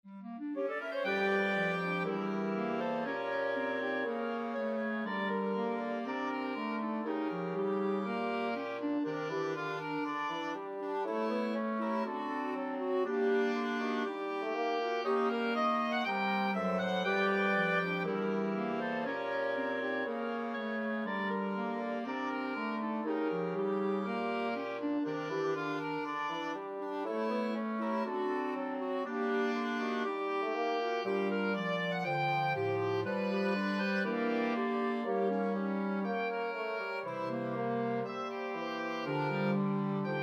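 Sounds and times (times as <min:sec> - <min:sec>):
woodwind ensemble: 0:00.1 - 0:40.2.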